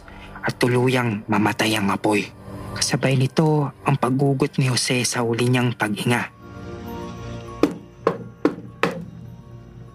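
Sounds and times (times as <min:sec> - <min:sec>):
speech: 0:00.6 - 0:06.4
knocking on a wooden door: 0:07.6 - 0:09.1.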